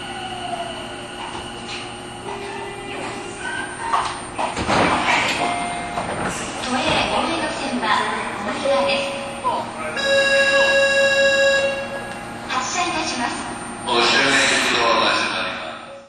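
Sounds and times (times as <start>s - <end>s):
Tobu 50050 series train running from Suitengumae to Kiyosumi-shirakawa: 0.0s - 15.8s.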